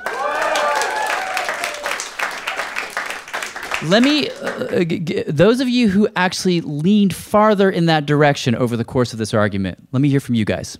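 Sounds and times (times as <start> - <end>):
audience whoops: 0.0 - 2.9
debate audience applauding and cheering to vote: 0.0 - 5.0
speech: 3.8 - 10.7.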